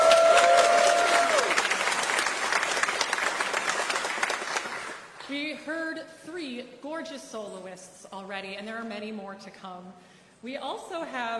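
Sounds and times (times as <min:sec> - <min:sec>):
audience applauding: 0:00.0 - 0:05.3
speech: 0:07.0 - 0:11.3.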